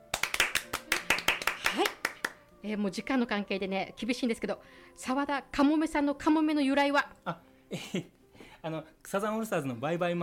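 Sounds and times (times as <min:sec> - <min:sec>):
hands clapping: 0:00.0 - 0:02.5
speech: 0:02.6 - 0:10.2.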